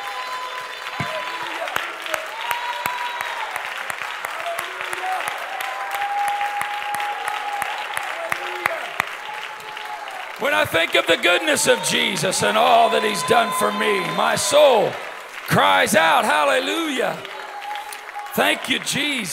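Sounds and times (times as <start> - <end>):
large crowd clapping: 0.0 - 19.3
voices shouting and cheering: 0.0 - 19.3
speech: 10.4 - 17.3, 18.4 - 19.3.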